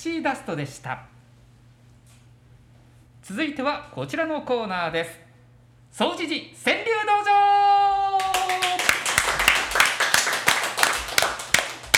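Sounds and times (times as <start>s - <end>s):
speech: 0.0s - 1.2s, 3.3s - 5.2s, 5.9s - 7.7s
large audience applause: 8.2s - 11.9s.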